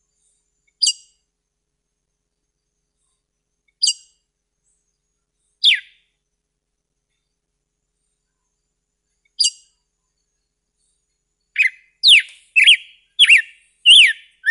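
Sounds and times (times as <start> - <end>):
red-cowled cardinal whistled song: 5.6 - 6.0, 11.5 - 14.4.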